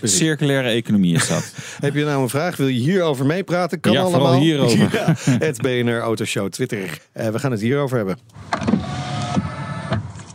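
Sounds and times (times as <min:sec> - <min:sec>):
speech: 0:00.0 - 0:08.9
laughter: 0:01.1 - 0:02.1, 0:04.0 - 0:05.8
car side mirror electric motor whirring: 0:08.4 - 0:10.3.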